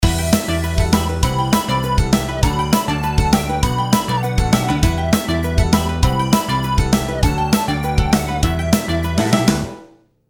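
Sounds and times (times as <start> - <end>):
delay effect: 0.0 - 9.8.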